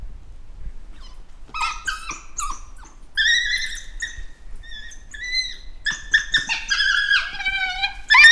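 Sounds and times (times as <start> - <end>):
African wild dog twittering: 1.0 - 8.2.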